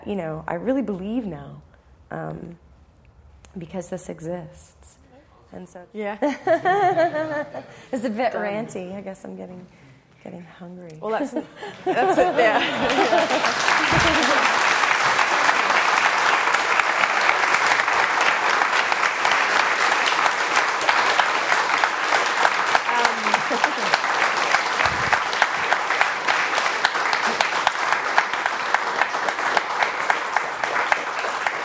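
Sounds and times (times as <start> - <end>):
speech: 0.1 - 2.6, 3.6 - 14.5
laughter: 6.2 - 7.8, 11.2 - 15.9, 22.5 - 27.8
audience clapping: 12.0 - 31.6.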